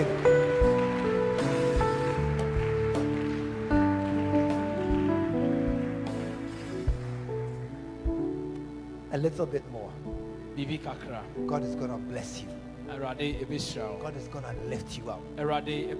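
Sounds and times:
audience clapping hands: 0:00.0 - 0:07.9
loud church music with keyboard chords and bass: 0:00.0 - 0:15.9
speech: 0:09.2 - 0:15.9.

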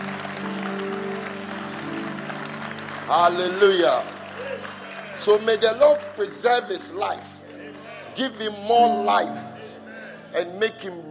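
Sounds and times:
crowd clapping: 0:00.0 - 0:08.3
speech: 0:03.1 - 0:04.2, 0:05.2 - 0:07.4, 0:08.2 - 0:09.5, 0:10.3 - 0:11.1.

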